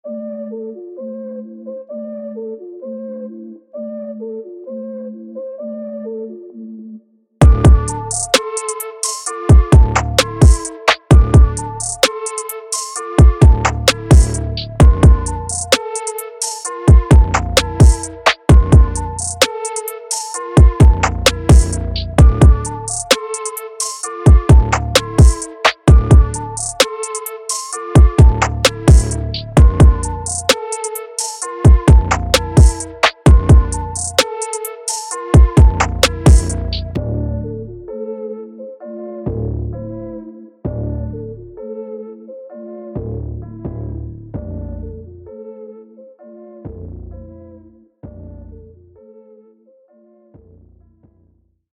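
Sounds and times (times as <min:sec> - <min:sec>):
flute: 0:00.0 - 0:48.4.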